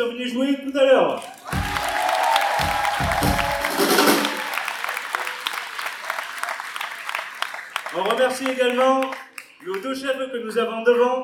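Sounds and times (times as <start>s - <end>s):
speech: 0.0s - 1.7s, 8.0s - 11.2s
audience applause: 1.2s - 10.1s.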